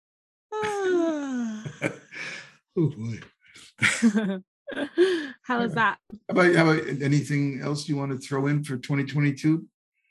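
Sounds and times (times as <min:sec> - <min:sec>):
person yawning: 0:00.6 - 0:02.4
laughter: 0:00.6 - 0:09.4
speech: 0:01.0 - 0:09.7
breathy exhales and gasps: 0:01.7 - 0:02.5.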